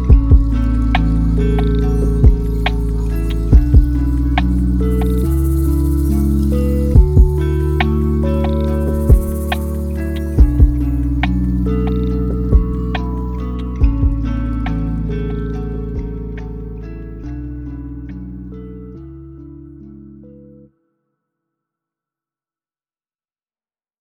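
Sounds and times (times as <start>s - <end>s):
lofi hip hop: 0.0s - 18.3s.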